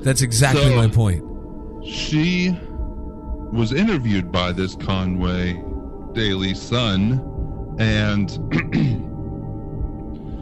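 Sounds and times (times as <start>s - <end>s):
speech: 0.0s - 2.7s, 3.5s - 9.1s
throat clearing: 8.4s - 9.1s.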